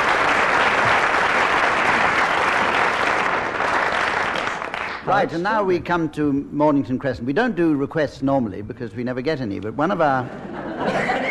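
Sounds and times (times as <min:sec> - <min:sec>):
audience applause: 0:00.0 - 0:05.4
speech: 0:05.1 - 0:11.0
laughter: 0:10.2 - 0:11.2.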